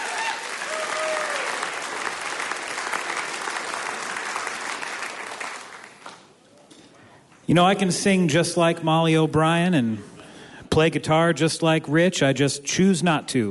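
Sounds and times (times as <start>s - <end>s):
audience applause: 0.0s - 6.3s
speech: 7.5s - 10.1s, 10.8s - 13.4s.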